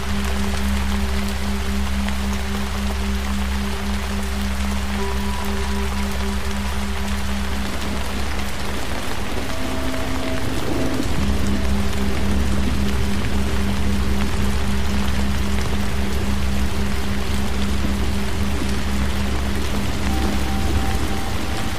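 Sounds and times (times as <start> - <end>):
steady dense rain hiss: 0.0 - 21.7
sustained low singing bowl tones: 4.8 - 8.4, 9.2 - 13.1, 20.0 - 21.7.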